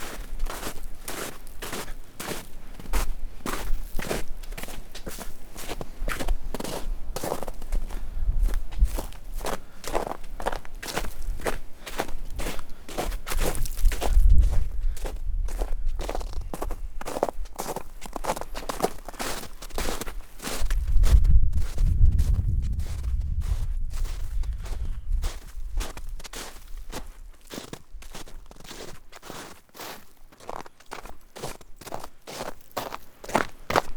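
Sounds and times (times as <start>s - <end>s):
footsteps on a nature walking path: 0.0s - 33.9s
low rumbles: 20.8s - 25.2s.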